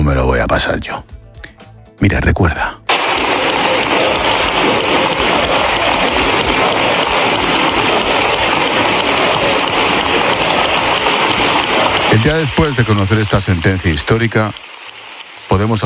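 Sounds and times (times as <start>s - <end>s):
speech: 0.1s - 1.2s, 2.0s - 2.8s, 12.2s - 14.7s, 15.5s - 15.8s
parliamentary applause: 2.9s - 15.8s.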